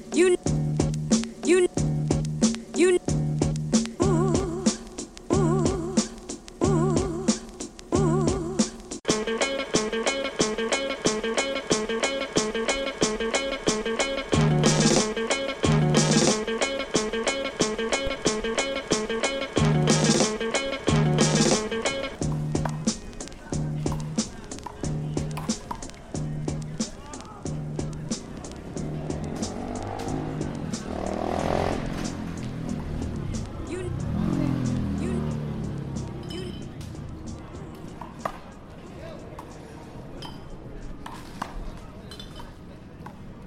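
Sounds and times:
regular thumping beat with ringing tones: 0:00.1 - 0:38.5
voices: 0:02.5 - 0:03.1, 0:03.8 - 0:43.4
traffic: 0:21.8 - 0:43.4
vehicle swooping past in East River Park: 0:27.9 - 0:37.9.

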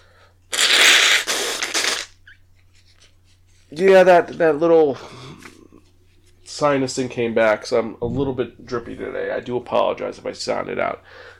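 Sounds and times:
person blowing nose: 0:00.5 - 0:02.3
speech: 0:03.7 - 0:05.2, 0:06.6 - 0:11.3.

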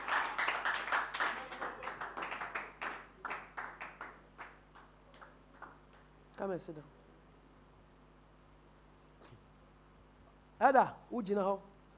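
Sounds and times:
audience clapping as people come forward to sit down: 0:00.0 - 0:06.1
speech: 0:06.4 - 0:07.0, 0:10.6 - 0:11.7.

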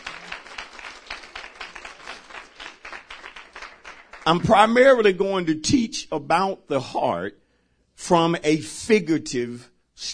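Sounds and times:
audience clapping: 0:00.0 - 0:05.0
speech: 0:04.2 - 0:07.4, 0:08.0 - 0:10.1.

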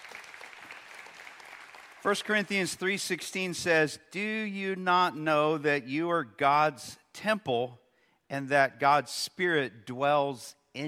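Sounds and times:
audience applause welcoming online viewers: 0:00.0 - 0:02.9
speech: 0:02.0 - 0:10.8.

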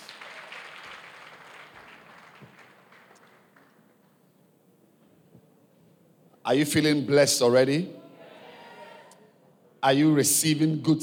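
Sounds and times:
audience clapping hands: 0:00.0 - 0:04.2
speech: 0:06.5 - 0:08.0, 0:09.8 - 0:11.0.

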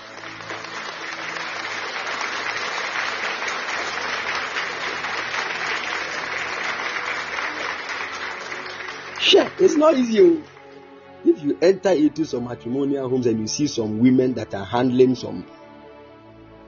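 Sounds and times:
church congregation clapping for married couples: 0:00.0 - 0:11.4
speech: 0:09.3 - 0:10.5, 0:11.4 - 0:15.6.

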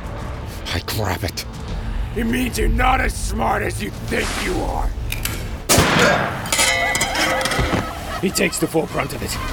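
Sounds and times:
speech: 0:00.7 - 0:05.0, 0:06.0 - 0:06.4, 0:08.2 - 0:09.5
pistol fired at point-blank range: 0:05.7 - 0:06.4
laughter: 0:06.8 - 0:09.5.

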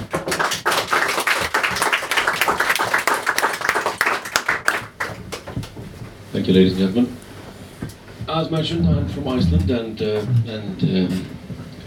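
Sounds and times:
audience applause welcoming an author at a book reading: 0:00.0 - 0:05.7
speech: 0:06.4 - 0:07.2, 0:08.4 - 0:11.4.

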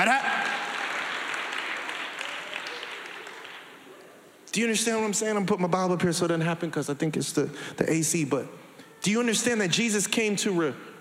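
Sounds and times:
speech: 0:00.0 - 0:00.3, 0:04.5 - 0:10.9
audience clapping during a church sermon: 0:00.0 - 0:04.0.

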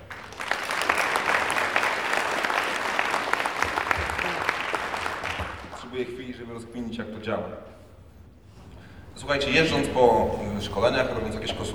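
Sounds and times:
crowd clapping: 0:00.0 - 0:06.1
speech: 0:06.0 - 0:07.8, 0:09.2 - 0:11.7.

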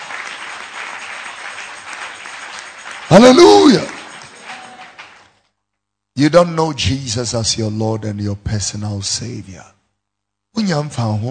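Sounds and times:
congregation clapping hands at a church service: 0:00.0 - 0:05.4
speech: 0:03.1 - 0:04.0, 0:06.2 - 0:09.8, 0:10.6 - 0:11.2.

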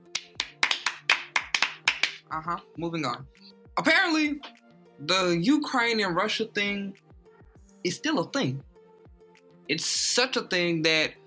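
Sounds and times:
hand clapping: 0:00.0 - 0:02.3
speech: 0:02.3 - 0:07.0, 0:07.8 - 0:08.7, 0:09.7 - 0:11.2.

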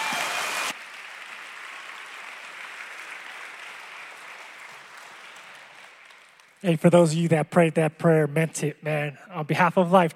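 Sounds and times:
audience clapping: 0:00.0 - 0:07.2
speech: 0:06.6 - 0:10.1.

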